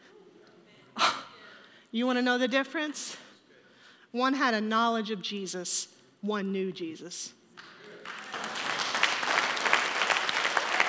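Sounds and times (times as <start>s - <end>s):
speech: 1.9s - 3.2s, 4.1s - 7.4s
audience clapping: 7.5s - 10.8s.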